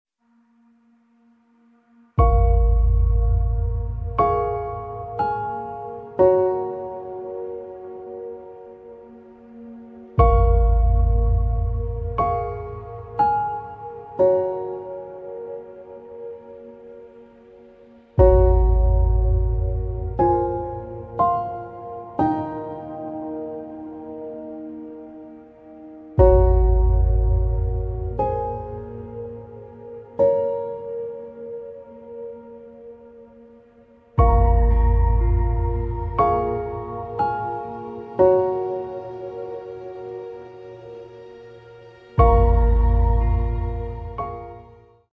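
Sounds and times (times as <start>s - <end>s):
sad piano piece: 0.2s - 45.1s.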